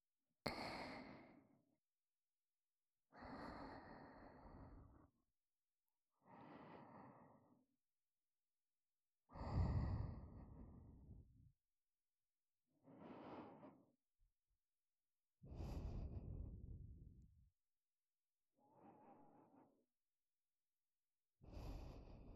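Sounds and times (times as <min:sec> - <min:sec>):
breathing in ASMR on the right side: 0:00.5 - 0:01.6, 0:03.1 - 0:05.2, 0:06.2 - 0:07.7, 0:09.3 - 0:11.4, 0:12.8 - 0:13.9, 0:15.5 - 0:17.1, 0:18.6 - 0:19.8, 0:21.4 - 0:22.3.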